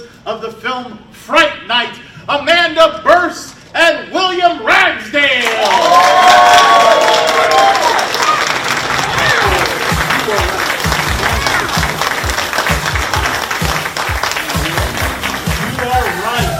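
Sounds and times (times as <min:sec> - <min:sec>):
speech: 0:00.2 - 0:07.8
audience applause: 0:05.4 - 0:16.5.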